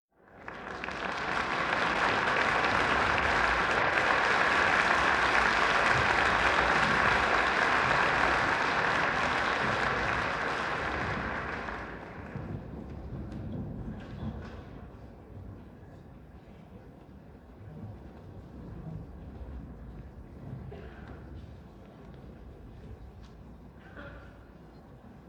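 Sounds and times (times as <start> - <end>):
applause: 0.1 - 14.8.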